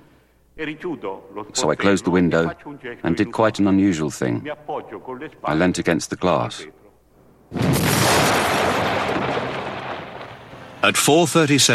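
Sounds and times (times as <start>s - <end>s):
speech: 0.6s - 6.8s, 10.8s - 11.7s
bomb explosion at the National Agrarian Bank in Milan's Piazza Fontana: 7.5s - 10.7s.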